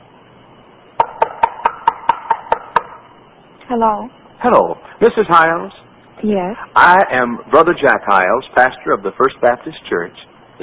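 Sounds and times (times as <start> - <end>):
knocking on a door: 1.0 - 3.0
speech: 3.7 - 10.6.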